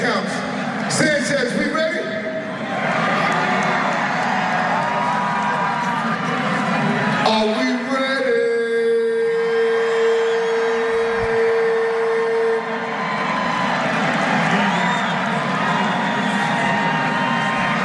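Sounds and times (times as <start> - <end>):
arena crowd cheering: 0.0 - 17.8
speech: 1.0 - 1.5
loud held horn or synth tone: 8.8 - 12.9.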